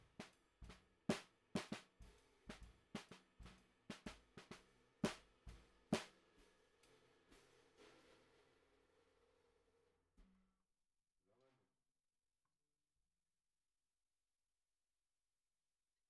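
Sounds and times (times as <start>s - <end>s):
snare drum recorded from the bottom: 0.0s - 8.3s.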